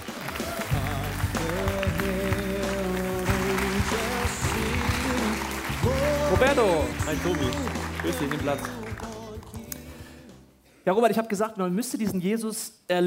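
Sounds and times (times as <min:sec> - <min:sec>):
thunderous audience applause: 0:00.0 - 0:09.5
upbeat music with sustained tones and a driving beat: 0:00.0 - 0:10.5
speech: 0:06.4 - 0:08.8, 0:10.9 - 0:13.0.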